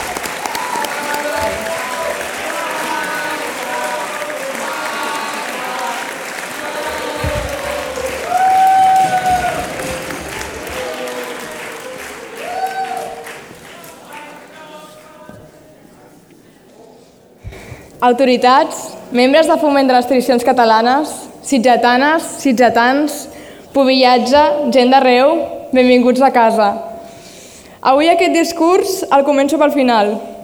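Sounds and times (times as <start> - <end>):
audience applause: 0.0 - 16.2
speech: 18.1 - 26.9, 27.8 - 30.3.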